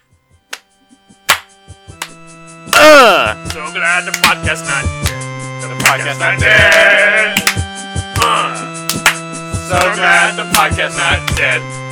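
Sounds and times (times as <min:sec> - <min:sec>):
hand claps: 0:00.5 - 0:00.7, 0:01.3 - 0:11.7
speech: 0:03.1 - 0:05.0, 0:05.9 - 0:07.4, 0:09.7 - 0:11.8.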